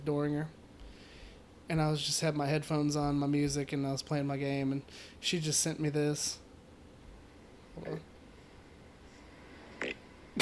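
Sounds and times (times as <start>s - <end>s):
speech: 0.0s - 0.6s, 1.7s - 6.4s, 7.8s - 8.1s
recorded fart: 9.8s - 10.3s.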